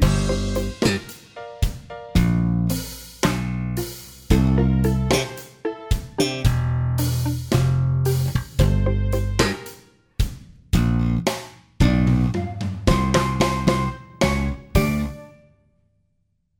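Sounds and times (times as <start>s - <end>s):
slow bass theme music: 0.0s - 1.2s, 2.2s - 9.7s, 10.8s - 15.3s.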